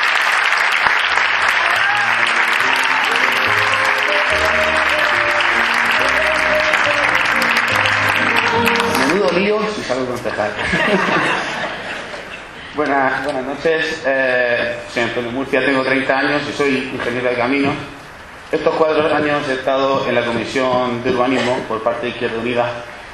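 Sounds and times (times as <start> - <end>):
crowd clapping: 0.0 - 9.8
upbeat music: 2.2 - 9.6
people chuckling: 9.8 - 12.8
speech: 10.0 - 11.8, 12.8 - 22.9.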